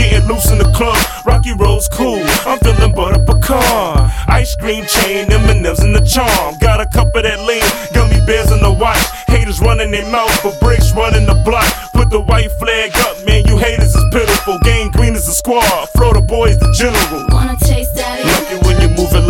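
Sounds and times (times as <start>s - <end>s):
hip hop music: 0.0s - 19.2s.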